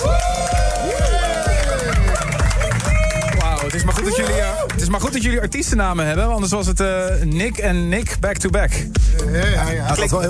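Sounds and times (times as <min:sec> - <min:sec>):
festival crowd applause: 0:00.0 - 0:05.2
speech: 0:04.9 - 0:10.2.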